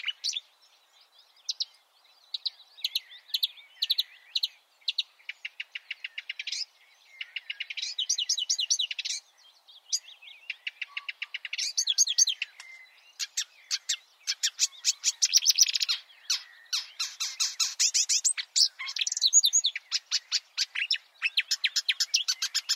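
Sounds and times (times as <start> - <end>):
marsh warbler singing: 0.0 - 22.7.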